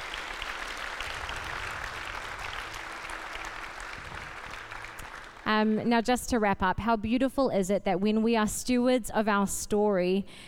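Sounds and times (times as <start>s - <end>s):
audience applause: 0.0s - 5.5s
speech: 5.5s - 10.4s.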